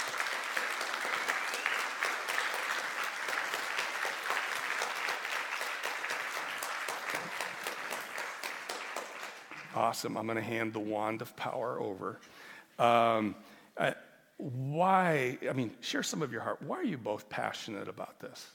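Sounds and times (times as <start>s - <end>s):
audience applause: 0.0s - 9.9s
speech: 9.8s - 18.5s.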